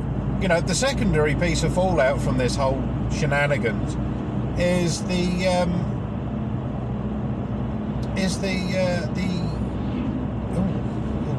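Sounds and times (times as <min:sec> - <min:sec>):
car driving on the road: 0:00.0 - 0:11.3
speech: 0:00.4 - 0:05.9, 0:08.2 - 0:09.5.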